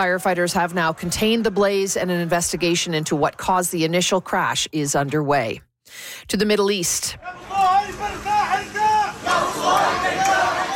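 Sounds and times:
speech: 0:00.0 - 0:08.7
funeral procession moving through Gaza City: 0:07.2 - 0:10.7.

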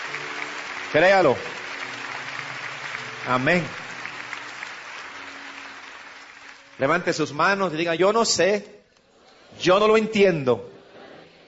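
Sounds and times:
crowd clapping during a worship service: 0:00.0 - 0:07.8
speech: 0:00.9 - 0:01.6, 0:03.2 - 0:03.8, 0:06.8 - 0:08.8, 0:09.6 - 0:10.7.

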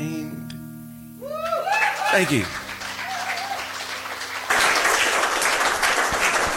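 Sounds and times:
audience applause: 0:01.4 - 0:06.5
speech: 0:02.1 - 0:02.6.

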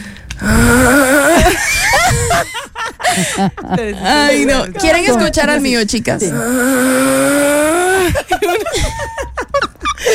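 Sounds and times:
person imitating snoring: 0:00.4 - 0:01.5, 0:06.2 - 0:08.2
laughter: 0:01.3 - 0:05.1, 0:08.0 - 0:10.1
speech: 0:02.4 - 0:09.3.

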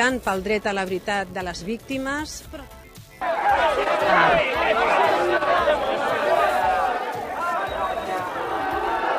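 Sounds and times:
speech: 0:00.0 - 0:05.9
crowd shouting protest chants against Vox: 0:03.2 - 0:09.1.

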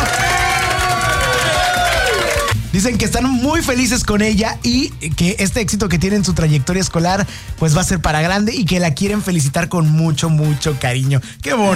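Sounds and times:
applause: 0:00.0 - 0:02.6
speech: 0:02.8 - 0:11.7.

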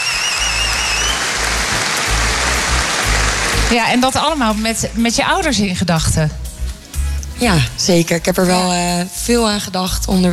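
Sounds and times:
applause: 0:00.0 - 0:04.0
speech: 0:03.7 - 0:06.4, 0:07.4 - 0:10.3.

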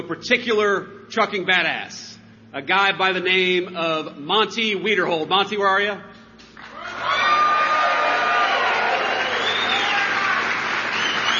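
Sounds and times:
speech: 0:00.1 - 0:06.1
rally crowd clapping and cheering: 0:06.6 - 0:11.3.

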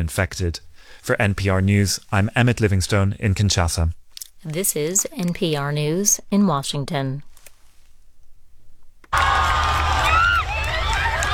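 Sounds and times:
speech: 0:00.0 - 0:07.3
crowds in Madrid cheering to welcome Pope Leo: 0:09.1 - 0:11.3.

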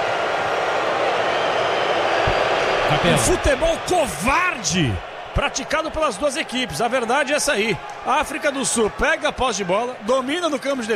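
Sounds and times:
stadium crowd booing: 0:00.0 - 0:10.9
speech: 0:02.9 - 0:10.9.

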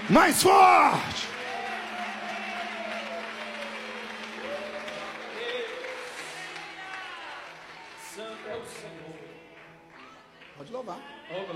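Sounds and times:
audience clapping: 0:00.0 - 0:11.5
speech: 0:00.1 - 0:01.3, 0:10.6 - 0:11.5.

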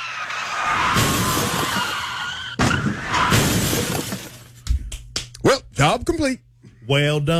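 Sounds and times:
car tires skidding: 0:00.0 - 0:04.0
car crashing with crunching and shattering impacts: 0:00.1 - 0:04.5
speech: 0:05.9 - 0:07.3.

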